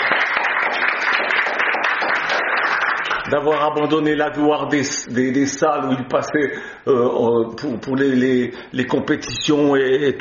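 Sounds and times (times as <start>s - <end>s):
audience applause: 0.0s - 3.6s
speech: 3.3s - 10.1s.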